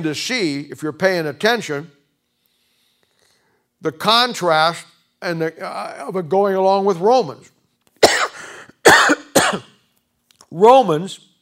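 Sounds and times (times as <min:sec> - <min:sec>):
speech: 0:00.0 - 0:02.0, 0:03.8 - 0:07.6, 0:08.9 - 0:09.7, 0:10.5 - 0:11.3
person coughing after swallowing wrong: 0:08.0 - 0:09.8.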